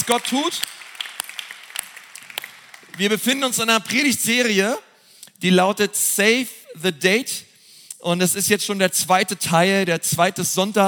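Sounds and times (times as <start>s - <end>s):
speech: 0.0s - 0.8s, 3.0s - 10.8s
audience applause: 0.0s - 3.3s.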